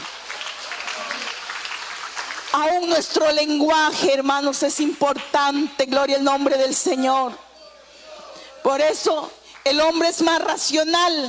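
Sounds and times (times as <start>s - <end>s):
church congregation clapping during a sermon: 0.0s - 3.2s, 9.5s - 10.2s
speech: 2.6s - 7.5s, 8.6s - 11.2s.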